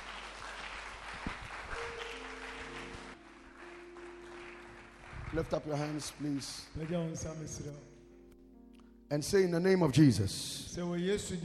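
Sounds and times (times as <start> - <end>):
audience clapping hands in praise: 0.0 - 7.8
speech: 5.3 - 7.9, 9.1 - 11.4.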